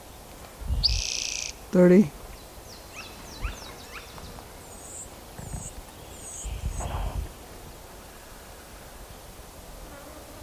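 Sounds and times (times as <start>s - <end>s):
pileated woodpecker calling: 0.8s - 1.6s, 2.7s - 6.9s
speech: 1.7s - 2.2s.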